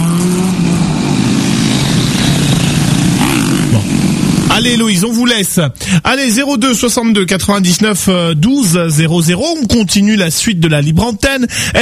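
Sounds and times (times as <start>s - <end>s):
cars passing in traffic: 0.0s - 5.0s
speech: 4.6s - 11.8s.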